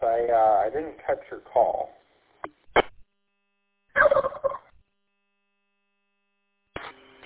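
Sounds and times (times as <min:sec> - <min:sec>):
speech: 0:00.2 - 0:02.0
turkey gobbling: 0:04.0 - 0:04.7.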